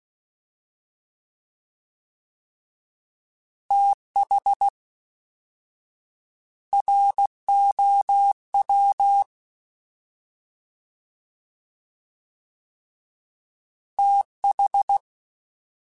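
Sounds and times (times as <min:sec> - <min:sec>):
fast CW Morse code groups: 0:03.7 - 0:04.7, 0:06.7 - 0:09.3, 0:14.0 - 0:15.1.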